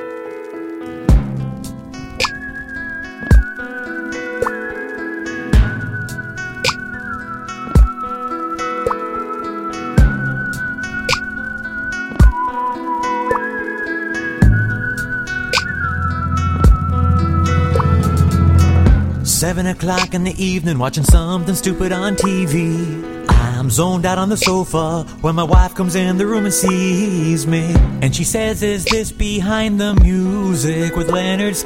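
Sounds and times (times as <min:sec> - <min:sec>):
music played on ARP synthesizers: 0:00.0 - 0:20.3
speech: 0:19.6 - 0:31.6.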